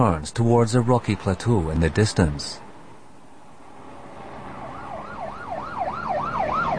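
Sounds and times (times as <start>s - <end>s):
speech: 0.0s - 2.6s
state patrol police car siren wailing: 4.6s - 6.7s.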